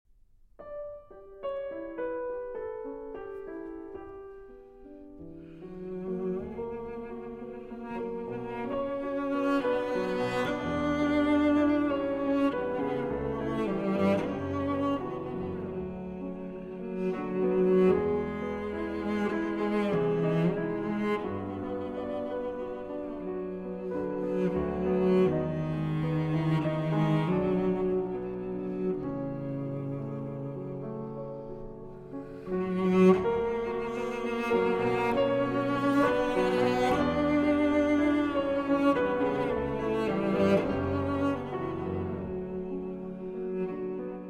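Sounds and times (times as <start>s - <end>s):
piano: 0.1s - 44.2s
cello: 0.6s - 44.2s.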